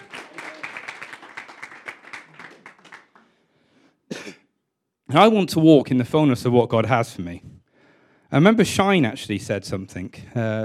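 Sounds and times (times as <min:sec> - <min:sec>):
round of applause: 0:00.0 - 0:03.4
speech: 0:05.1 - 0:07.5, 0:08.3 - 0:10.6.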